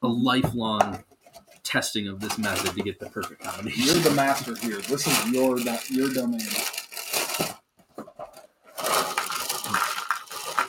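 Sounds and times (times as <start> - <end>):
speech: 0.0 - 1.1, 1.7 - 6.8
cereal pouring into a bowl: 3.9 - 7.4, 8.8 - 10.6.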